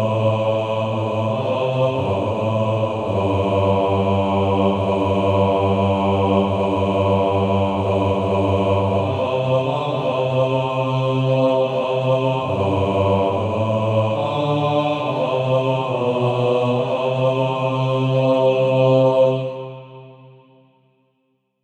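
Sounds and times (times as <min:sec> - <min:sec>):
male choir singing: 0:00.0 - 0:20.5.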